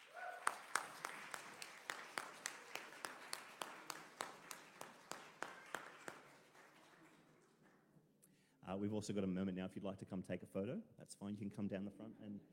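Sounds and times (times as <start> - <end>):
crowd applause: 0.0 - 7.8
speech: 8.7 - 12.5.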